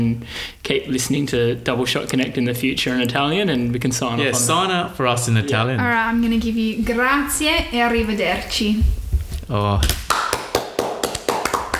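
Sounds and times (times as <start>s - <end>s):
speech: 0.0s - 10.0s
double hand clap: 9.8s - 11.7s.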